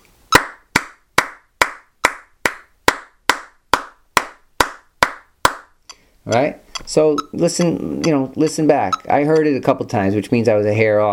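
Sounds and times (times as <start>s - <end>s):
hand clapping in time to a metronome: 0.3s - 5.8s
speech: 6.3s - 11.1s.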